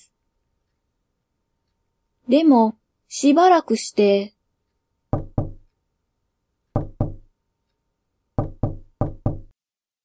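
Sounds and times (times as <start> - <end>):
speech: 2.3 - 4.4
knuckles rapping on a door: 5.1 - 5.7, 6.7 - 7.3, 8.4 - 9.5.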